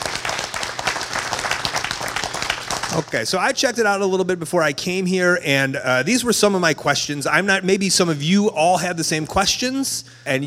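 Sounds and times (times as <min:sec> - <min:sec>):
audience applause: 0:00.0 - 0:03.2
speech: 0:02.9 - 0:10.4.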